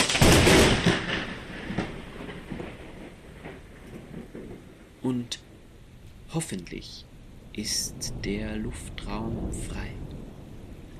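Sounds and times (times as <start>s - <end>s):
thunder: 0.0s - 5.0s, 7.9s - 10.9s
speech: 5.1s - 5.5s, 6.3s - 10.0s.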